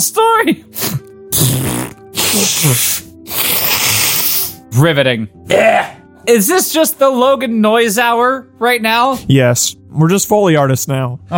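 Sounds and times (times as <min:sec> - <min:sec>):
speech: 0:00.0 - 0:03.0, 0:04.7 - 0:11.3
person blowing nose: 0:00.7 - 0:04.6.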